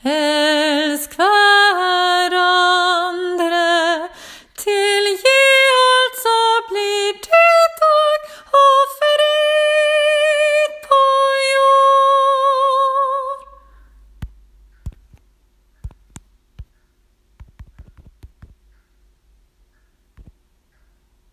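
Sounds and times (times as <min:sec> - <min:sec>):
soprano singing a hymn: 0:00.0 - 0:13.7.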